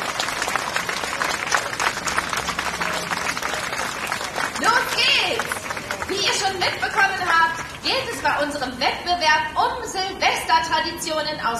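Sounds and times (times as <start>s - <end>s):
applause for competition teams: 0.0s - 8.4s
speech: 7.0s - 11.5s.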